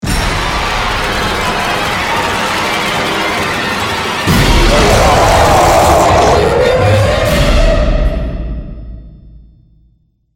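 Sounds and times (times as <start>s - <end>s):
music: 0.0s - 10.3s.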